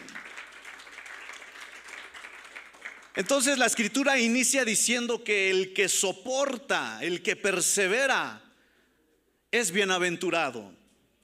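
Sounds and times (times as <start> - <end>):
audience applauding: 0.0 - 3.6
speech: 3.2 - 8.4, 9.5 - 10.8.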